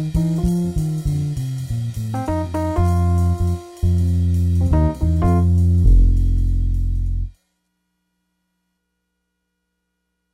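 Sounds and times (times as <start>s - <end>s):
blues in F: 0.0s - 7.3s.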